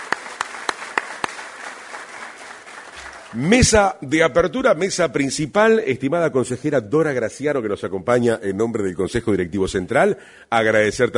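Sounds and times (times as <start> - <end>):
audience applause: 0.0 - 3.8
speech: 3.3 - 11.1.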